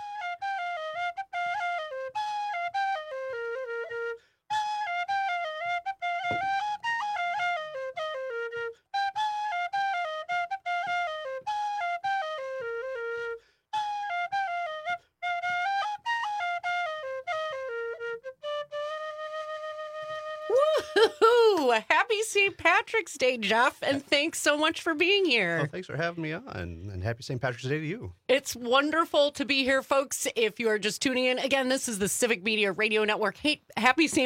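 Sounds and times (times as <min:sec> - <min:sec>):
Irish tin whistle played live: 0:00.0 - 0:21.1
laughter: 0:20.5 - 0:21.8, 0:25.6 - 0:26.4
speech: 0:21.0 - 0:34.2.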